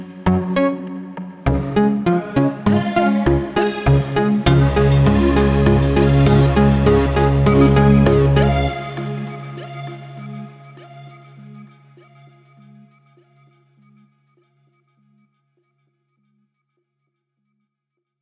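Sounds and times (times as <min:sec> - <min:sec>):
melody: 0:01.5 - 0:10.6.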